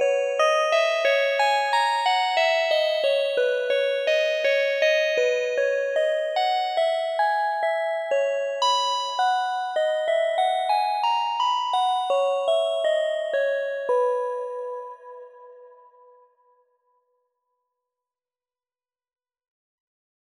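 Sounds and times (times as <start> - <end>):
synth bells: 0.6 - 16.2.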